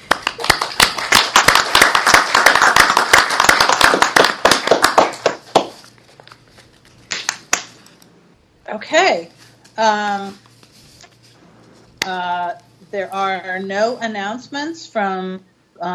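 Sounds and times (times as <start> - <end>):
applause: 0.0 - 5.9
speech: 8.9 - 10.5, 12.0 - 15.9.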